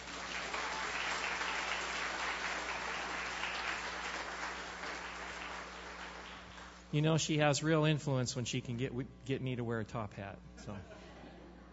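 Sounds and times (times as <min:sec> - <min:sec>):
audience applause: 0:00.0 - 0:06.8
speech: 0:06.9 - 0:11.0.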